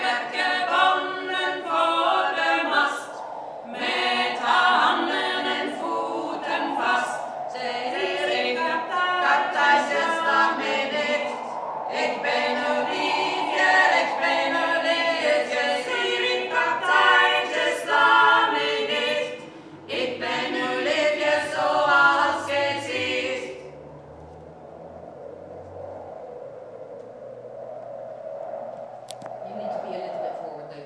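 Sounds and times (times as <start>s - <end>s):
people singing at a rehearsal in Bristol: 0.0s - 23.8s.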